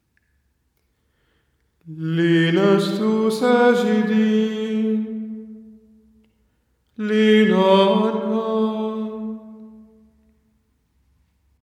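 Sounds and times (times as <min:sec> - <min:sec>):
liturgical chant: 0:01.8 - 0:06.1, 0:07.0 - 0:10.2.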